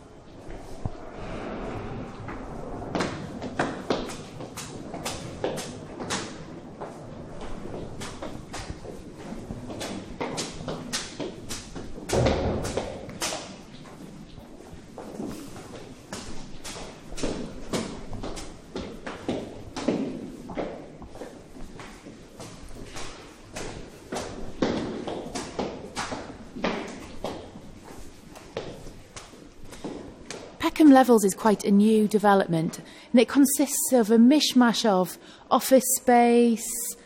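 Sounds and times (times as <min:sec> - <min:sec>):
footsteps climbing a staircase in a new office and gallery development: 0:02.2 - 0:31.0
speech: 0:30.8 - 0:36.8.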